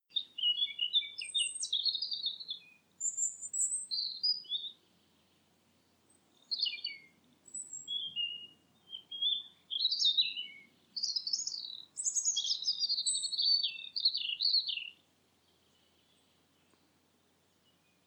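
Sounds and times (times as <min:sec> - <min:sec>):
bird calls with high thin whistles and short chirps: 0:00.1 - 0:04.8, 0:06.4 - 0:15.0.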